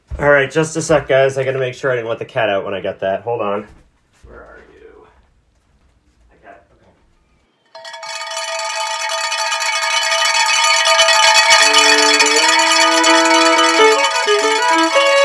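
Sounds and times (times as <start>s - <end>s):
speech: 0.2s - 4.5s
cowbell ringing: 7.8s - 15.2s
lower melody stepping between notes: 7.8s - 15.2s.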